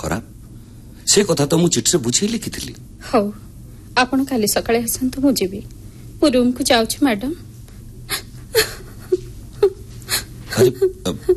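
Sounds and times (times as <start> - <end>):
speech: 0.0 - 0.3, 1.1 - 7.5, 10.6 - 11.3
person crying in short whimpering sobs: 8.1 - 11.3.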